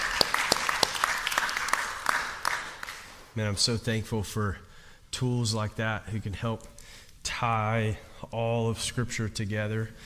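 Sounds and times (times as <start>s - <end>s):
audience clapping: 0.0s - 3.3s
speech: 3.4s - 10.0s.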